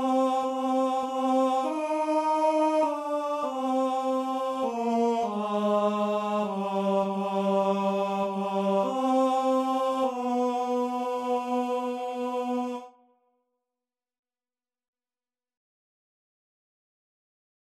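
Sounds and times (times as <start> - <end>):
tenor singing: 0.0 - 12.9.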